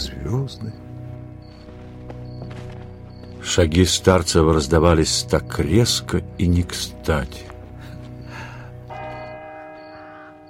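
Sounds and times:
speech: 0.1 - 0.9, 3.5 - 7.5
church clock bell striking: 8.8 - 10.4.

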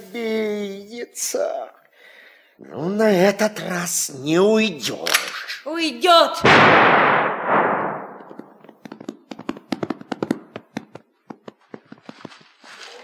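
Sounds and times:
speech: 0.1 - 1.8, 2.6 - 7.3
gunshot in a dramatic wartime film scene: 6.4 - 8.6
sharp clicks and taps: 8.1 - 12.3.

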